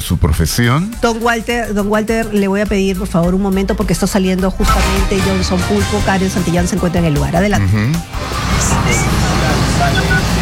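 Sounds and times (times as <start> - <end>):
speech: 0.1 - 9.2
SWAT armored tactical vehicle engine rumbling: 5.6 - 10.3
crowd babble: 7.0 - 10.3.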